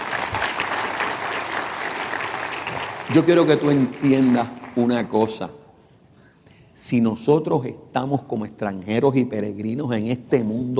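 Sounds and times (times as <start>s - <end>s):
audience applause: 0.0s - 5.4s
speech: 3.1s - 5.6s, 6.8s - 10.7s.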